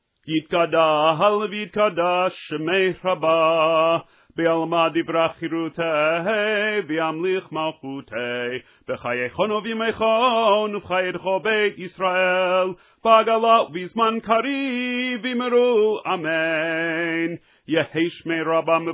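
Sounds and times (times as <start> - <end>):
upbeat prayer chant before musaf: 0.3 - 18.9.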